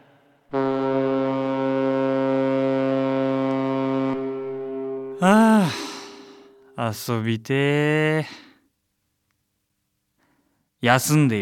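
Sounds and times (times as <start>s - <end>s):
deep cruise ship horn blast at harbor: 0.5s - 5.2s
speech: 5.2s - 5.9s, 6.8s - 8.4s, 10.8s - 11.4s.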